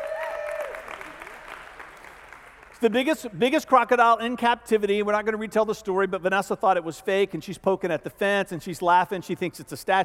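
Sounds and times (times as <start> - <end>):
audience clapping: 0.0 - 3.3
speech: 2.8 - 10.0.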